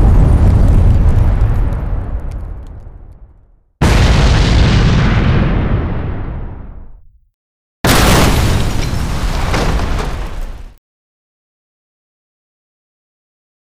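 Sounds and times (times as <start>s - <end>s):
explosion: 0.0s - 7.2s, 7.8s - 10.8s.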